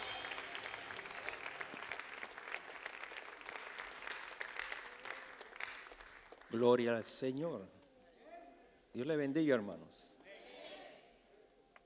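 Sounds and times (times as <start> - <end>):
audience applause: 0.0 - 6.8
speech: 6.5 - 7.8, 9.0 - 10.2.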